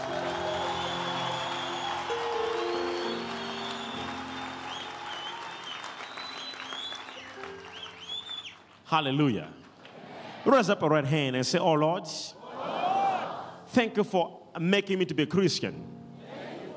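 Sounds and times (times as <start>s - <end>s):
audience clapping: 0.0s - 10.0s
speech: 8.9s - 9.6s, 10.4s - 12.4s, 13.8s - 15.9s.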